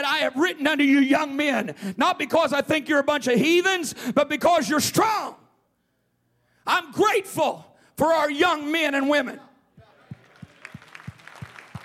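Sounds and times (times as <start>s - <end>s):
speech: 0.2s - 5.4s, 6.6s - 9.5s
polite hand applause: 9.8s - 11.8s.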